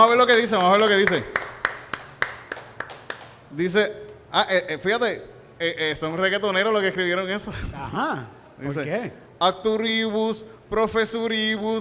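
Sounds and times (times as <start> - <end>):
speech: 0.0 - 1.4, 3.5 - 11.7
applause: 0.0 - 3.5.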